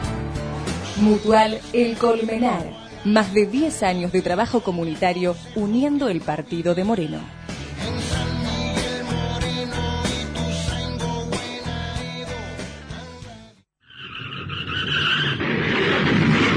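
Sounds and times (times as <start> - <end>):
upbeat music: 0.0 - 13.6
speech: 1.0 - 7.9
car tires screeching: 13.9 - 16.0.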